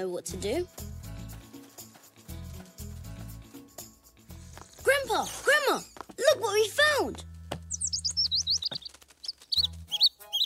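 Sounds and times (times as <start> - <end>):
speech: 0.0 - 0.9, 5.0 - 7.3
baby bird chirping: 7.7 - 10.4.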